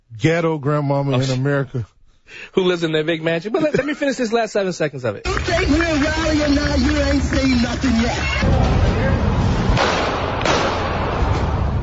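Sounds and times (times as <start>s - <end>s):
noise of video soundtrack: 0.0s - 11.8s
speech: 0.2s - 10.1s
gunshots in a played video clip: 5.4s - 11.7s.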